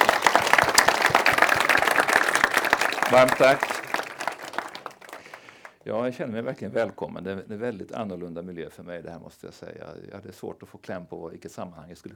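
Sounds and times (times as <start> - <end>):
audience applause: 0.0 - 5.8
speech: 3.1 - 3.7, 5.8 - 12.1.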